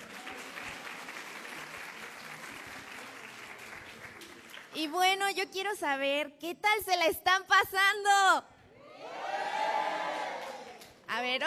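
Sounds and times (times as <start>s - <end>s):
audience applause: 0.0s - 4.8s, 9.4s - 10.9s
speech: 4.8s - 8.5s, 11.2s - 11.4s.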